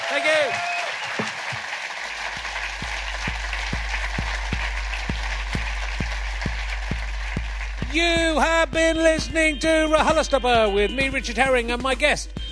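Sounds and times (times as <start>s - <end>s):
audience applause: 0.0s - 8.5s
speech: 0.2s - 0.8s, 7.9s - 12.4s.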